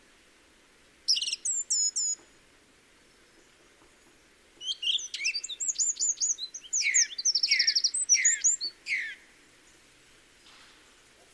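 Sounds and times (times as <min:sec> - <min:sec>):
faint low hiss: 0:00.0 - 0:11.3
song thrush singing in the Peak District: 0:01.1 - 0:02.3, 0:04.6 - 0:09.3.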